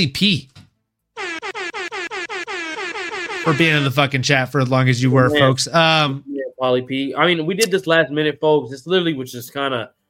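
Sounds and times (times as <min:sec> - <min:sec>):
speech: 0:00.0 - 0:00.5, 0:03.4 - 0:10.0
air horn sound effect: 0:01.2 - 0:03.9.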